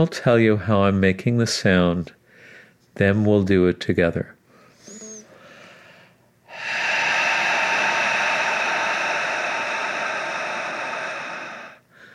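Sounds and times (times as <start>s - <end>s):
speech: 0.0s - 2.2s, 3.0s - 4.4s
resistance breathing from the back of the throat: 4.8s - 12.1s.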